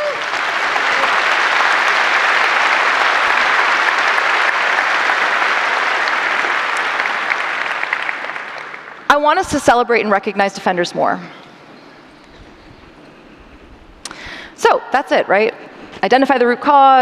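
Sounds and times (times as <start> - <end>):
audience applause: 0.0 - 9.2
speech: 9.2 - 11.4, 15.0 - 16.9.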